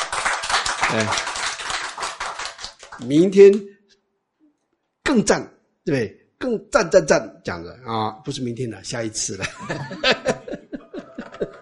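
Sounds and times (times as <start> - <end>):
audience clapping hands: 0.0 - 3.6, 9.9 - 11.6
speech: 0.9 - 1.4, 3.0 - 3.8, 5.1 - 10.4
laughter: 9.4 - 11.6.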